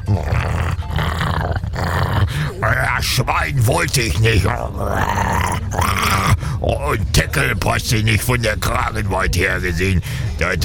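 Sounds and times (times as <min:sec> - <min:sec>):
German shepherd dog growling: 0:00.0 - 0:02.8, 0:04.4 - 0:06.5
speech: 0:00.1 - 0:00.4, 0:02.7 - 0:10.6.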